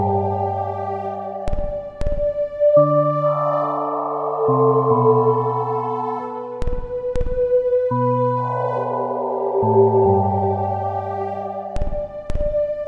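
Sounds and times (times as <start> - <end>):
peaceful ambient song: 0.0 - 12.8.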